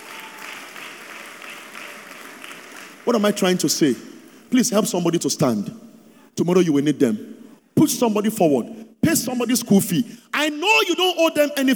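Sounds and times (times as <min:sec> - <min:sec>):
faint audience applause: 0:00.0 - 0:03.5
speech: 0:03.0 - 0:05.8, 0:06.4 - 0:11.7.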